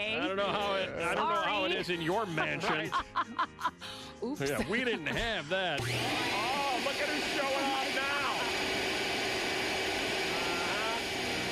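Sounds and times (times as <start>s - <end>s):
laughter: 0.0s - 8.0s
speech: 0.0s - 8.2s
Mercedes vacuum cleaner running: 5.8s - 11.5s.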